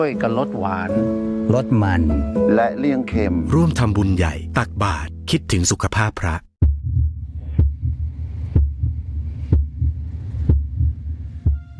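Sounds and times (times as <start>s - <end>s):
speech: 0.0s - 6.5s
heartbeat: 6.6s - 11.7s
low rumbling hum: 6.6s - 11.7s.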